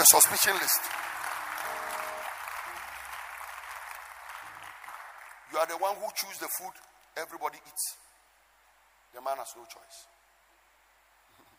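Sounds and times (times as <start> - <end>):
speech: 0.0 - 1.0, 5.6 - 8.0, 9.1 - 10.1
audience clapping: 0.0 - 6.0.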